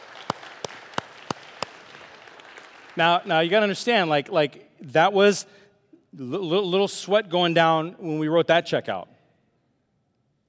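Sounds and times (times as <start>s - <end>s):
audience applause: 0.0s - 3.3s
speech: 3.0s - 9.1s.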